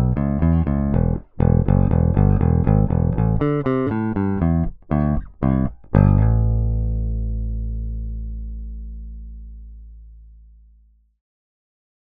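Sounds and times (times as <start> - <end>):
bass guitar with rock pick, linear: 0.0 - 11.1.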